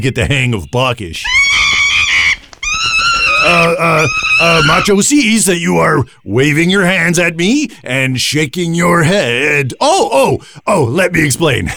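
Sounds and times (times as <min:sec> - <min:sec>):
speech: 0:00.0 - 0:01.6, 0:03.4 - 0:11.7
monkey chattering: 0:01.2 - 0:05.1.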